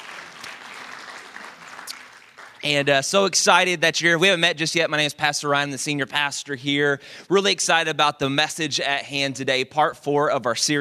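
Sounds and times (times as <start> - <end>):
church congregation clapping during a Sunday morning service: 0.0 - 2.9
speech: 2.6 - 10.7.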